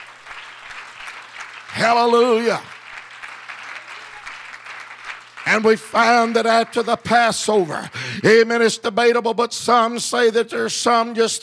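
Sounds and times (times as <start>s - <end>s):
audience clapping in praise: 0.0s - 8.7s
speech: 1.8s - 2.7s, 5.5s - 11.4s.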